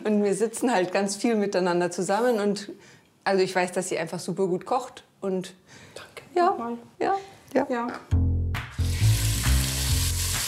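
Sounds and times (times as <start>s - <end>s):
speech: 0.0s - 8.3s
diced lamb hearts frying in clarified butter: 8.8s - 10.4s.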